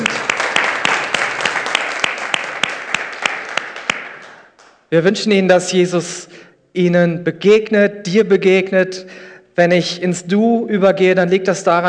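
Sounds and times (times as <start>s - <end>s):
church audience applause: 0.0s - 4.7s
speech: 4.9s - 11.8s.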